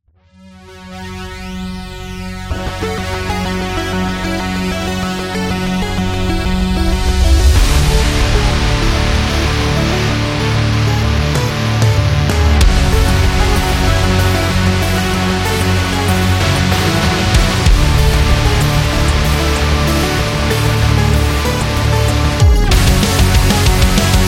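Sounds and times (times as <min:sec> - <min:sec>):
fast energetic sport background music: 0:00.4 - 0:24.2.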